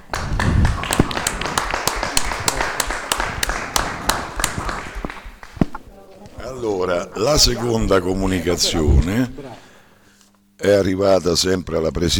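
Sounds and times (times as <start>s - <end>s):
council members applauding: 0.0s - 5.2s
speech: 6.6s - 9.4s, 10.6s - 12.1s.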